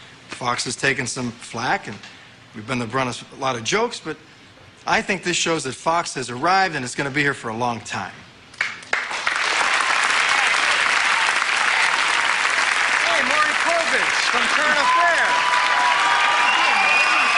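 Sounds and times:
speech: 0:00.4 - 0:08.3
studio audience applause: 0:08.6 - 0:17.3.

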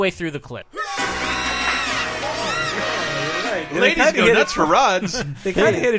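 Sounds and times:
speech: 0:00.0 - 0:01.2, 0:03.7 - 0:05.9
high-pitched crowd cheering: 0:00.8 - 0:04.9
laughter: 0:00.8 - 0:05.9.

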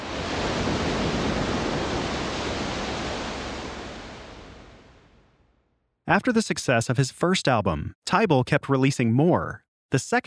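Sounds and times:
ocean surf washing onto a shore: 0:00.0 - 0:05.6
speech: 0:06.1 - 0:10.2.

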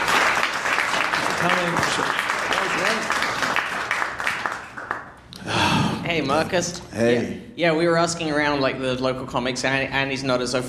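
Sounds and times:
audience clapping to welcome a comedian: 0:00.0 - 0:05.6
speech: 0:06.2 - 0:10.6.

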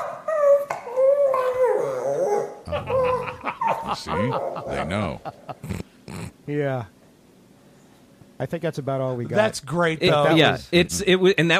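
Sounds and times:
dogs howling and whining: 0:00.0 - 0:05.1
laughter: 0:02.7 - 0:05.8
speech: 0:03.9 - 0:05.8, 0:06.5 - 0:07.0, 0:08.4 - 0:11.5.

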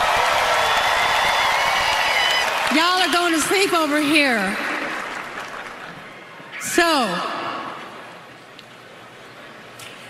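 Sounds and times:
crowd cheering and applauding: 0:00.0 - 0:06.5
speech: 0:02.8 - 0:04.7, 0:06.7 - 0:07.4.

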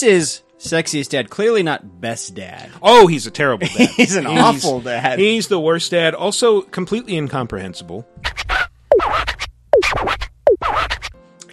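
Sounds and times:
speech: 0:00.0 - 0:08.5
laughter: 0:03.6 - 0:05.5
record scratching sound effect: 0:08.2 - 0:11.2.

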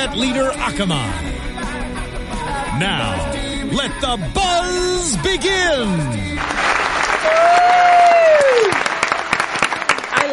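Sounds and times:
speech: 0:00.0 - 0:01.5, 0:02.8 - 0:08.8
loud dense crowd applause: 0:06.4 - 0:10.3.

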